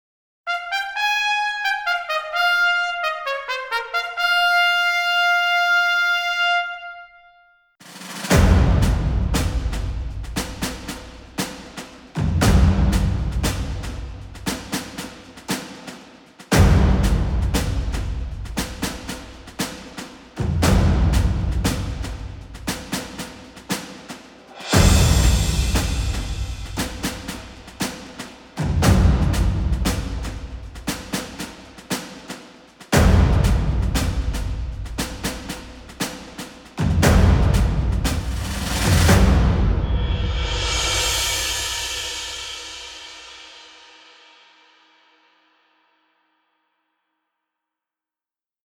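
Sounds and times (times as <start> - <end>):
battle music: 0.5 - 7.1, 8.0 - 15.7, 16.5 - 23.9, 24.5 - 31.5, 33.0 - 36.2, 36.8 - 42.7.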